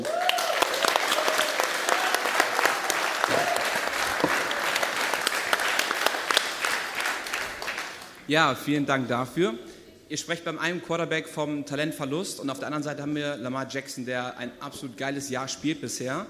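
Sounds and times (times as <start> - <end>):
live audience applauding: 0.0 - 8.2
speech: 8.3 - 16.2.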